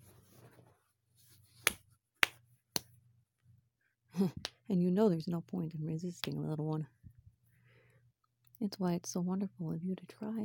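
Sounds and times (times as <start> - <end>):
slaps on skin: 1.6 - 2.9
speech: 4.2 - 7.0, 8.6 - 10.4.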